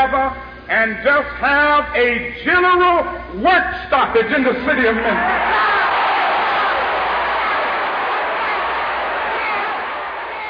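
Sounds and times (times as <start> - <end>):
speech: 0.7 - 5.8
large crowd shouting and yelling: 5.0 - 10.4.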